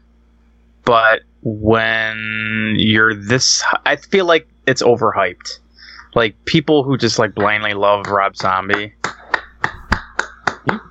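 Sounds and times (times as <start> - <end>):
speech: 0.8 - 9.2
slow soft golf clap: 7.4 - 10.8.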